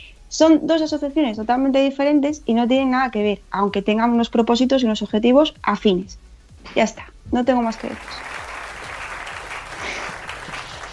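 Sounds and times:
speech: 0:00.3 - 0:08.4
applause: 0:07.8 - 0:10.9.

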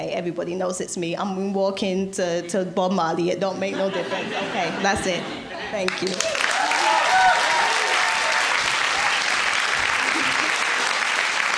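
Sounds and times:
speech: 0:00.1 - 0:06.3
laughter: 0:03.6 - 0:08.4, 0:09.7 - 0:11.0
audience applause: 0:05.9 - 0:11.5.

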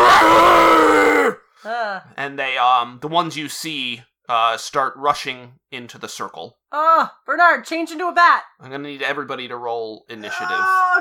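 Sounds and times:
voice imitating a creature's guttural battle roar: 0:00.0 - 0:01.4
speech: 0:02.0 - 0:10.9.

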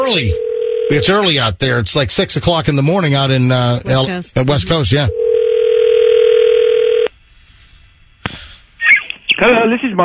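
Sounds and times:
speech: 0:00.1 - 0:05.2, 0:09.4 - 0:10.0
buzzing telephone dial tone: 0:00.4 - 0:01.2, 0:05.1 - 0:07.1.

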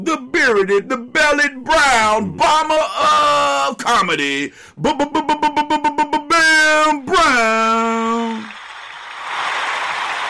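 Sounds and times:
speech: 0:00.0 - 0:08.5
audience applause: 0:08.1 - 0:10.2.

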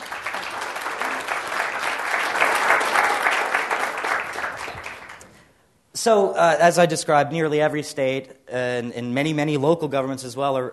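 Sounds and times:
audience applause welcoming a state commissioner at a public policy event: 0:00.0 - 0:05.4
speech: 0:06.0 - 0:10.7.

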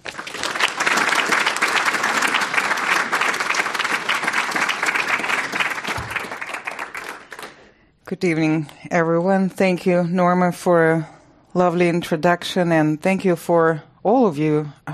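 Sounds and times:
audience applause at an evening lecture in San Francisco: 0:00.0 - 0:07.6
speech: 0:08.1 - 0:14.8.

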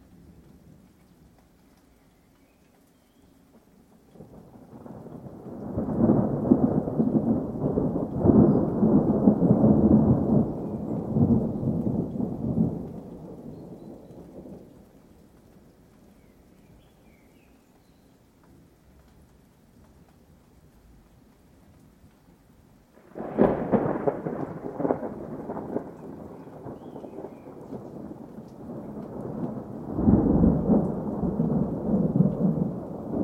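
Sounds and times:
light rain: 0:00.0 - 0:33.2
thunder rolling in a storm: 0:04.2 - 0:15.6, 0:23.0 - 0:33.2
sharp thunder crack: 0:04.6 - 0:13.5, 0:23.0 - 0:33.2.

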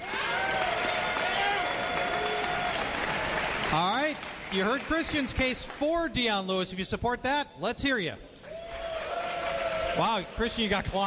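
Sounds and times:
cheering voices: 0:00.0 - 0:05.4, 0:08.4 - 0:11.0
audience applause: 0:00.0 - 0:05.8, 0:08.5 - 0:10.8
speech: 0:04.5 - 0:08.3, 0:10.0 - 0:11.0.

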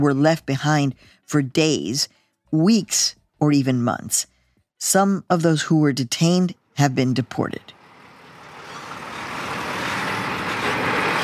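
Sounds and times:
speech: 0:00.0 - 0:07.8
huge truck passing: 0:07.6 - 0:11.2.

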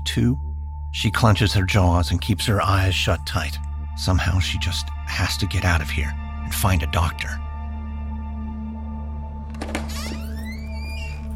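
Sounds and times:
speech: 0:00.2 - 0:07.5
door latch thunk and hinge creak as door swings open: 0:09.4 - 0:11.3.

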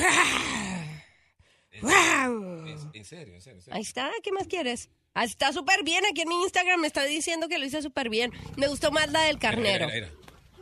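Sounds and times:
voice imitating a tiger's moan: 0:01.8 - 0:03.0
speech: 0:03.0 - 0:10.3.

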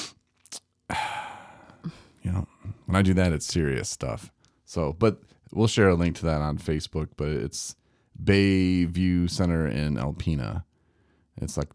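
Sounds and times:
nasal sniff or snort: 0:00.0 - 0:00.6
breathy puffs: 0:00.0 - 0:02.1
speech: 0:00.9 - 0:01.2, 0:01.8 - 0:10.7, 0:11.4 - 0:11.7.

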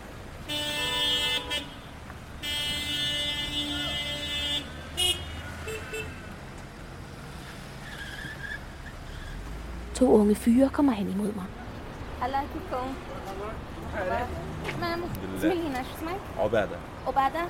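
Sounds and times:
car horn blasts and toots: 0:00.4 - 0:06.3
speech: 0:10.0 - 0:11.6, 0:12.2 - 0:17.4.

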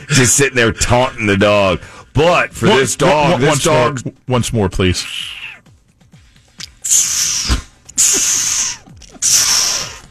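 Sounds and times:
speech: 0:00.1 - 0:05.4, 0:06.9 - 0:07.2
human beatbox imitation of a squirrel: 0:06.6 - 0:10.0.

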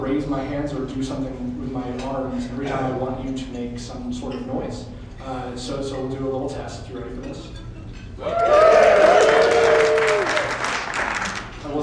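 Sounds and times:
speech: 0:00.1 - 0:07.6, 0:08.2 - 0:09.2
voices whooping: 0:08.2 - 0:10.8
audience applause: 0:08.2 - 0:11.6.

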